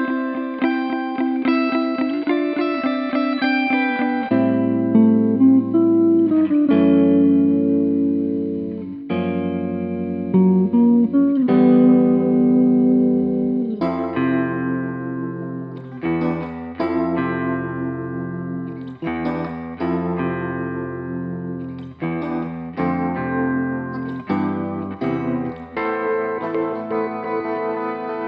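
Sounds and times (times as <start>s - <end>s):
ambient guitars: 0.0s - 28.2s.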